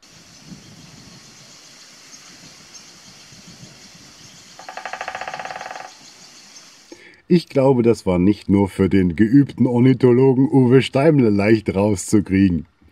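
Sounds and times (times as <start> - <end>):
flamingo honking calls: 4.6 - 6.0
speech: 7.3 - 12.7.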